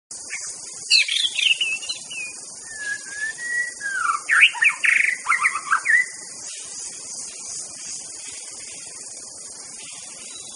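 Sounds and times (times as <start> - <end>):
White-rumped shama whistled song: 0.3 - 6.3, 9.8 - 10.5.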